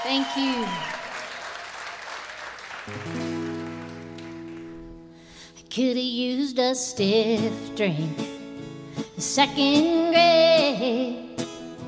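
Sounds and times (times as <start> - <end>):
speech: 0.0 - 1.0, 2.9 - 3.2, 5.8 - 8.4, 9.2 - 11.4
audience applause welcoming a longtime singer-songwriter: 0.0 - 5.1.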